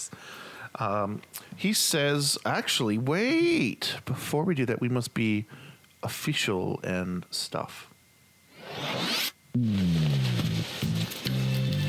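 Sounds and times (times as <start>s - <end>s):
speech: 0.0s - 7.9s
zipper being pulled down: 8.6s - 11.7s.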